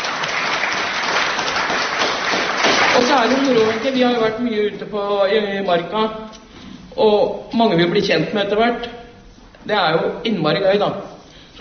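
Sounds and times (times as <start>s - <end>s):
crowd applause: 0.0s - 4.2s
speech: 3.2s - 6.4s, 7.0s - 9.0s, 9.6s - 11.5s.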